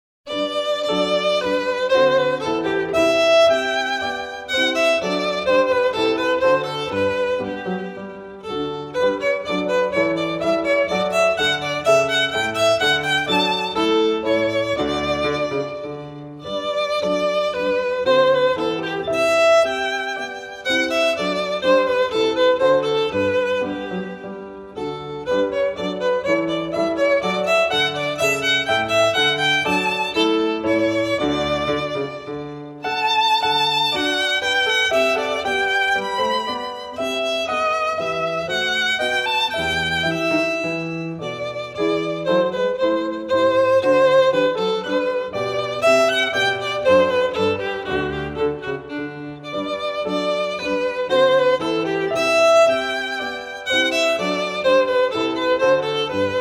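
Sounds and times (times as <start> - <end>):
violin bourrée: 0.3 - 56.4.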